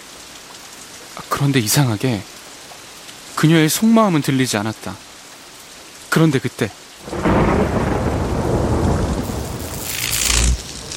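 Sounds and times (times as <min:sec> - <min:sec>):
speech: 0:01.2 - 0:02.4, 0:03.4 - 0:05.1, 0:06.1 - 0:07.4
steady hissing heavy rain: 0:07.0 - 0:10.9
thunder rumbling through a heavy rainstorm: 0:07.1 - 0:10.9.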